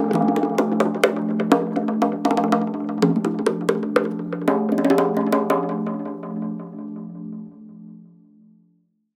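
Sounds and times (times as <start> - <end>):
bongo: 0.0 - 6.8.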